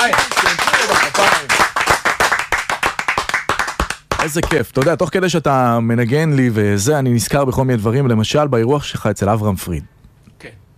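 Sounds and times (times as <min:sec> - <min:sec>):
speech: 0:00.0 - 0:00.7, 0:04.2 - 0:10.6
hand clapping: 0:00.0 - 0:05.0.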